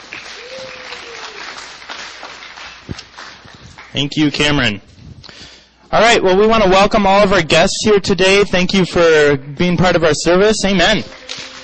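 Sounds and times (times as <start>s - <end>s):
audience applause for a speaker at a church service: 0.0s - 4.0s, 11.0s - 11.6s
speech: 4.0s - 4.9s, 5.9s - 11.2s.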